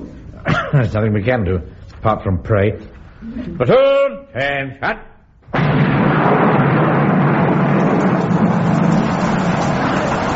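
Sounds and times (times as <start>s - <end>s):
speech: 0.7s - 5.1s
thunder: 5.5s - 10.3s
low rumble: 5.6s - 10.3s
heavy rain: 7.3s - 10.3s.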